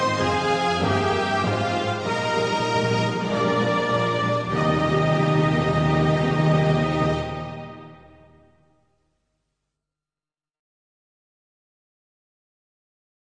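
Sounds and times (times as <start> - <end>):
national anthem: 0.0 - 8.1.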